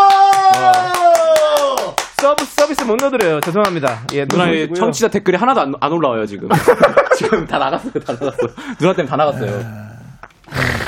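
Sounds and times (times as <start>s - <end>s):
applause, clapping hands: 0.0s - 4.6s
speech: 2.9s - 9.9s, 10.5s - 10.8s
laughter: 6.5s - 9.7s.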